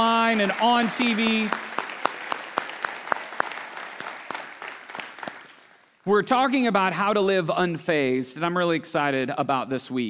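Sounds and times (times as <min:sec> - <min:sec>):
speech: 0:00.0 - 0:01.6, 0:06.0 - 0:10.0
sharper regularly spaced claps: 0:00.0 - 0:05.8
congregation applauding in welcome at a service: 0:00.0 - 0:05.9.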